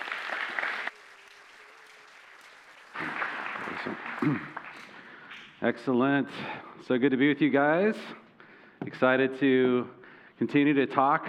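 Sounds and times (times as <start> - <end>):
audience applause welcoming a speaker at a church gathering: 0.0 - 5.3
speech: 3.8 - 4.6, 5.6 - 8.2, 8.8 - 11.2.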